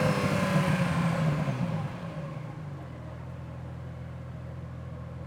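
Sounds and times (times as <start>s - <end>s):
1990 Ferrari Testarossa engine starting and driving at steady RPMs: 0.0s - 3.6s.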